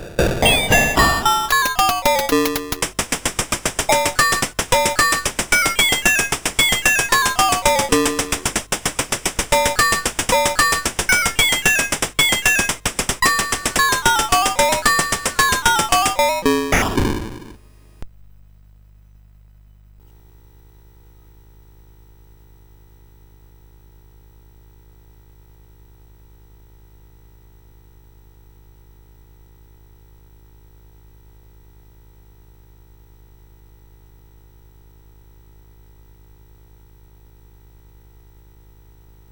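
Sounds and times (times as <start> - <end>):
CSG8580R5 drone: 0.3 - 17.6.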